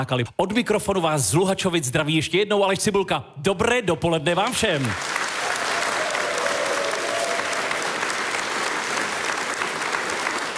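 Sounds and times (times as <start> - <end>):
speech: 0.0 - 5.2
audience applause: 4.8 - 10.5.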